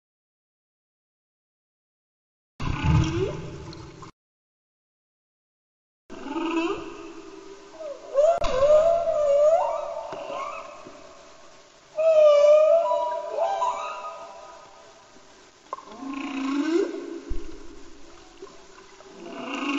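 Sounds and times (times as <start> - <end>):
humpback whale song in Antarctica: 6.1 - 11.3, 11.9 - 15.0, 15.8 - 17.8, 19.1 - 19.7.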